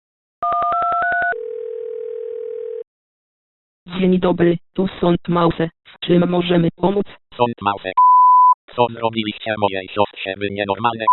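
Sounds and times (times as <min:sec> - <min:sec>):
touch-tone telephone dialing beeps: 0:00.4 - 0:01.8
steady mid-pitched telephone tone: 0:00.4 - 0:02.9
speech: 0:04.0 - 0:08.1, 0:08.7 - 0:11.1.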